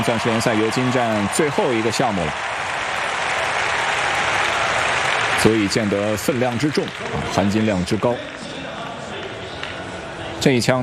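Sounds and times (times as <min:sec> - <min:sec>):
speech: 0:00.0 - 0:02.8, 0:05.4 - 0:08.5, 0:10.4 - 0:10.8
stadium crowd applause at Eugene Diamond League 1500 m: 0:00.0 - 0:10.4.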